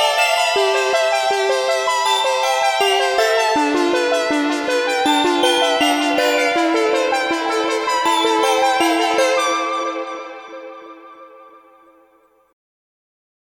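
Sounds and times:
Korg minilogue xd synthesizer playing synthwave: 0:00.0 - 0:11.8.

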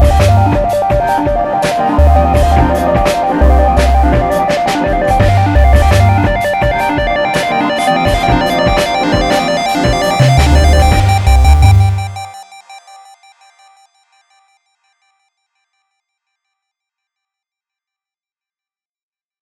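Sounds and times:
fanfare: 0:00.7 - 0:12.3.

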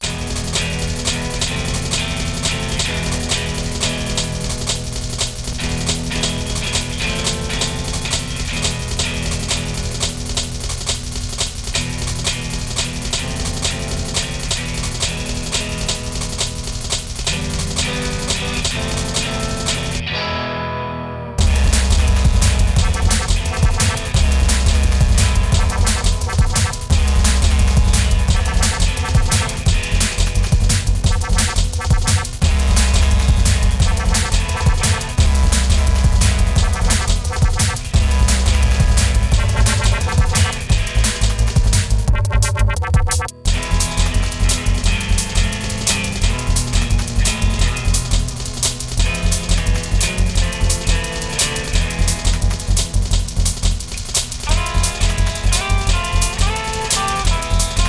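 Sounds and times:
LSDJ chiptune guitar: 0:00.0 - 0:57.8.

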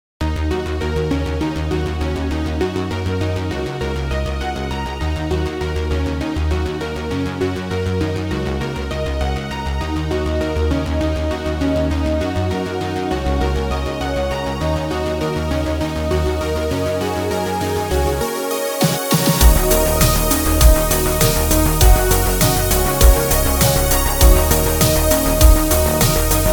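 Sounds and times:
synthwave study music: 0:00.3 - 0:26.5.

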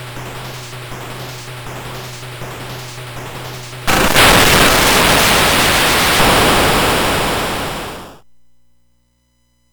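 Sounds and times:
demonstrative percussion: 0:00.0 - 0:03.9
unintentional explosion: 0:03.9 - 0:08.2.

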